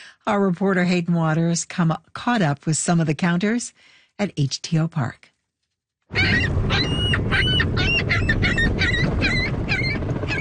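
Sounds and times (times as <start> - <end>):
speech: 0.2 - 5.3
seagulls calling at Toronto's waterfront: 6.1 - 10.3.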